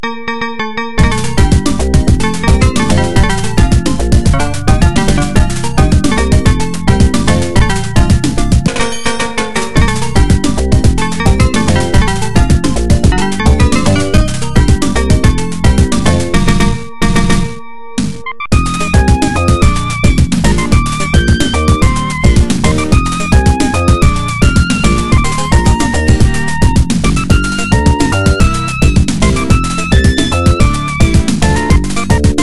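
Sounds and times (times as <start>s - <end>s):
music: 0.0s - 32.4s.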